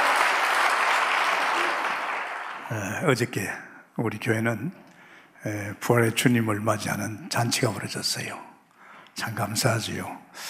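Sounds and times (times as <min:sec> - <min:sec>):
audience clapping hands: 0:00.0 - 0:03.0
speech: 0:02.7 - 0:08.5, 0:09.2 - 0:10.4.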